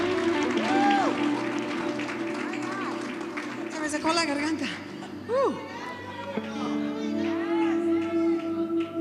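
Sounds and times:
audience applauding: 0.0 - 5.2, 5.8 - 8.9
speech: 4.0 - 5.8.

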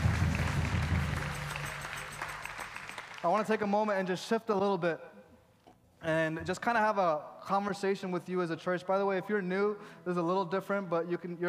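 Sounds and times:
audience clapping in praise: 0.0 - 3.8
speech: 3.2 - 5.2, 6.0 - 11.4.

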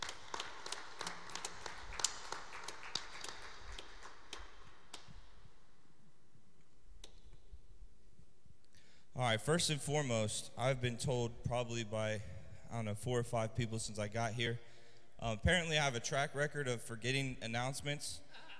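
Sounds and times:
audience applauding: 0.0 - 5.0
speech: 9.2 - 18.5.

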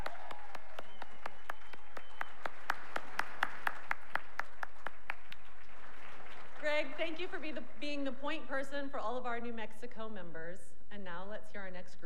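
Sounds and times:
audience applause: 0.0 - 7.4
speech: 7.0 - 12.0.

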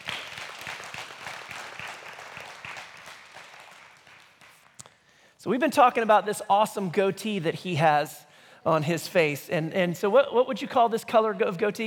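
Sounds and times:
crowd clapping: 0.0 - 5.0
speech: 5.4 - 11.8.

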